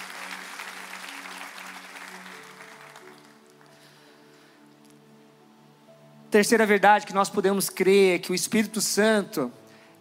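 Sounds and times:
audience applause: 0:00.0 - 0:03.8
speech: 0:06.3 - 0:09.6.

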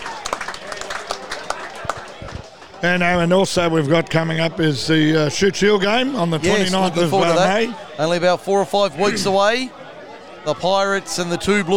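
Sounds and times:
crowd applause: 0:00.0 - 0:03.3
murmur of voices: 0:00.7 - 0:11.7
speech: 0:02.8 - 0:09.8, 0:10.4 - 0:11.7.

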